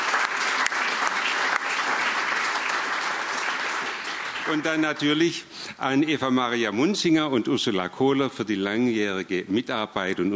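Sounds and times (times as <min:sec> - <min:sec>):
audience applause: 0:00.0 - 0:05.3
speech: 0:04.5 - 0:10.3.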